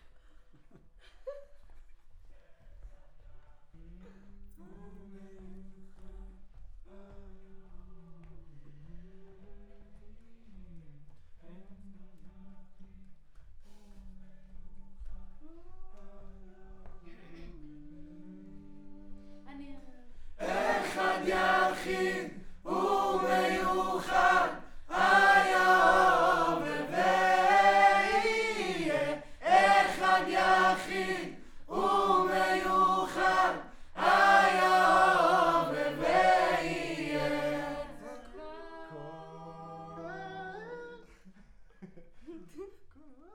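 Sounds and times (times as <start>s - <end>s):
choir singing: 20.4s - 40.7s.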